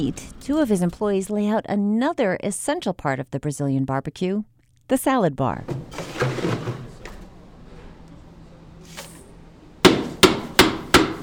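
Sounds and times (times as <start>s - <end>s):
speech: 0.0s - 6.0s
mallet hammering ice: 9.9s - 11.2s.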